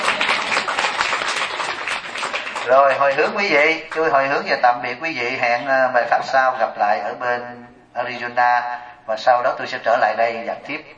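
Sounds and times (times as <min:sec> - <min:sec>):
audience clapping at a Buddhist dharma talk: 0:00.0 - 0:04.3
speech: 0:02.6 - 0:10.9.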